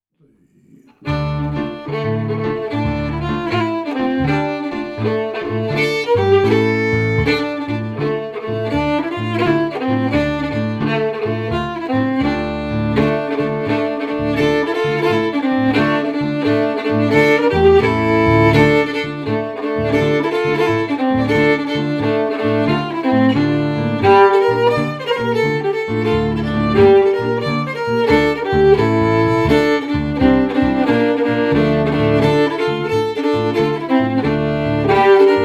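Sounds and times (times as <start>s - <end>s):
fiddle: 1.0s - 35.4s
piano: 1.0s - 35.4s.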